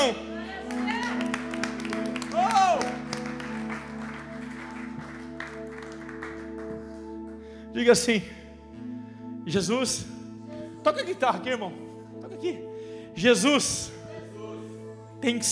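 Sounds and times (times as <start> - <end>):
audience applauding: 0.0 - 7.4
speech: 7.8 - 8.4, 9.5 - 10.2, 10.8 - 11.8, 12.4 - 14.0, 15.2 - 15.5.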